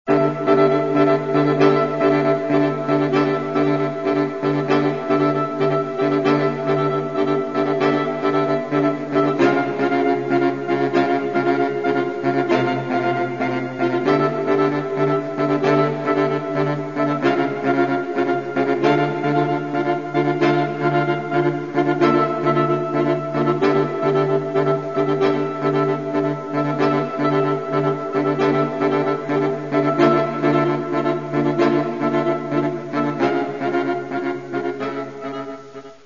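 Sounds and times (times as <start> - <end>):
modern saxophone: 0.1 - 36.0.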